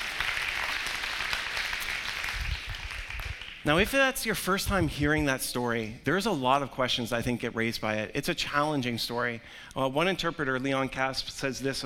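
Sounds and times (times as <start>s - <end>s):
audience applause: 0.0s - 3.6s
speech: 3.6s - 11.8s.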